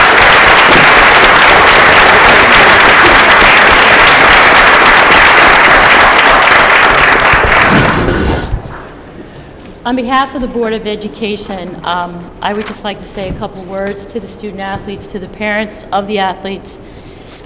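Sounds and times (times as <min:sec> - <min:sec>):
crowd applauding: 0:00.0 - 0:08.6
speech: 0:09.9 - 0:17.4.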